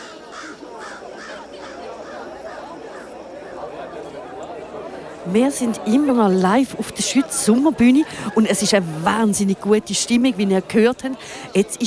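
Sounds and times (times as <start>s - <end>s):
raven croaking: 0.0s - 5.0s
murmur of chatter: 0.0s - 11.8s
speech: 5.2s - 11.8s.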